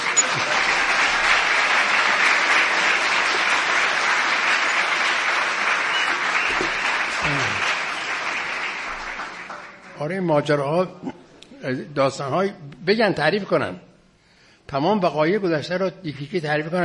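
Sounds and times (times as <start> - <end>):
audience applause at a storytelling performance: 0.0 - 10.0
speech: 10.0 - 13.9, 14.7 - 16.8.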